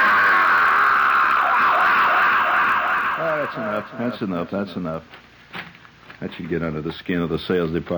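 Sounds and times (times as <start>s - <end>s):
short falling cries: 0.0s - 4.3s
long wavering scream with heavy echo chamber effect: 0.0s - 4.7s
speech: 3.5s - 5.2s, 6.2s - 7.9s.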